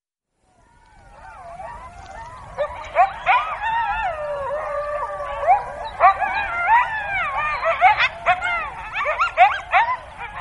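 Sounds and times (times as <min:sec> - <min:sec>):
coyote howling and yipping with quavering howl: 0:00.5 - 0:10.3.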